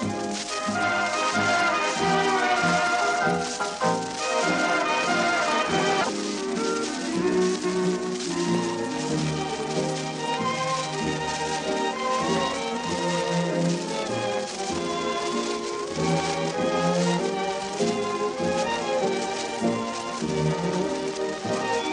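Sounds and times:
waltz music: 0.0s - 21.9s.

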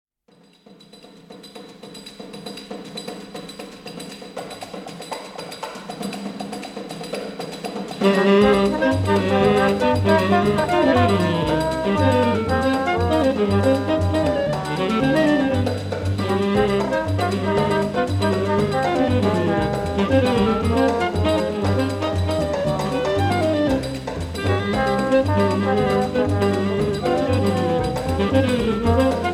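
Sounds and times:
septet playing: 8.0s - 29.3s.

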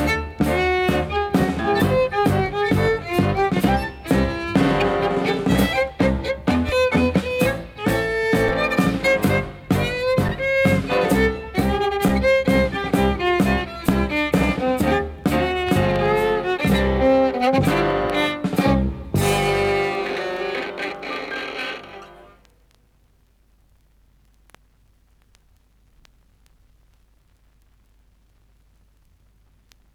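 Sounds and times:
tango music: 0.0s - 22.4s.

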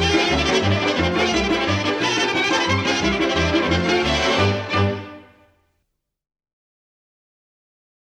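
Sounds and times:
Romanian folk orchestra playing: 0.0s - 5.5s.

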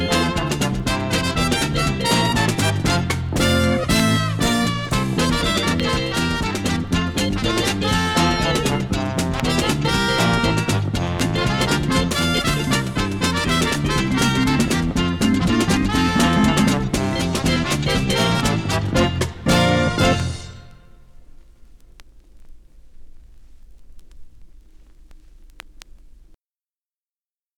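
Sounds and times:
instrumental ensemble: 0.0s - 21.0s.

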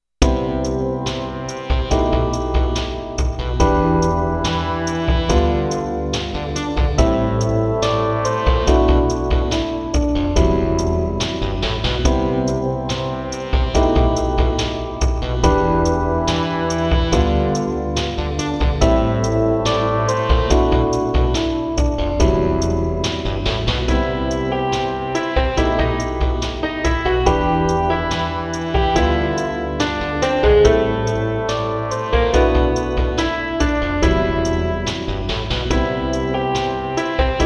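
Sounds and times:
lofi hip hop song: 0.2s - 37.4s.

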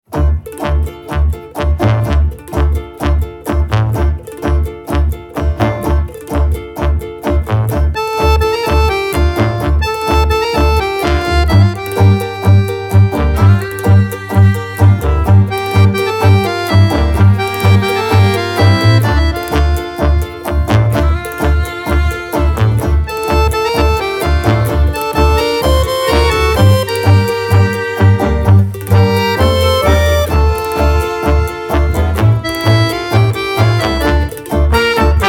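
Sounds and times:
tango music: 0.1s - 35.2s.

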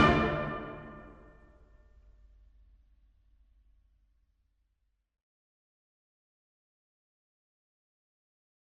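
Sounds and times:
Finnish polka played by brass band: 0.0s - 1.1s.

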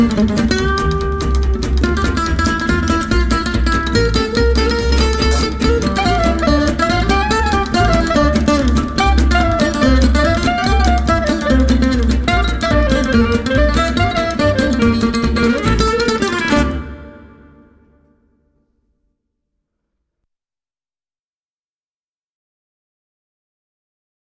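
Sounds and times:
swing jazz with guitar and saxophone: 0.0s - 17.6s.

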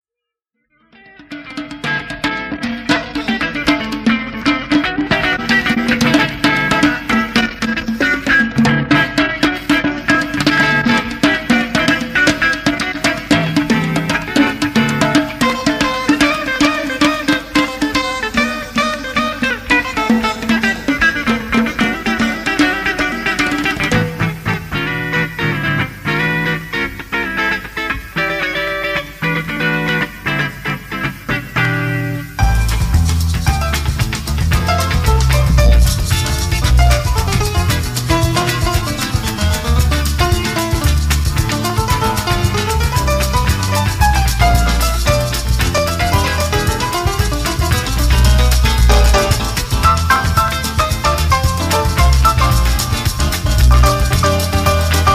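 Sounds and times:
instrumental composition: 0.7s - 55.1s.

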